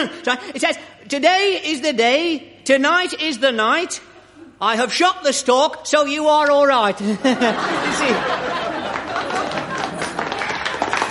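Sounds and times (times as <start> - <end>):
speech: 0.0 - 8.7
laughter: 7.0 - 11.0
wedding guests applauding: 8.4 - 11.0.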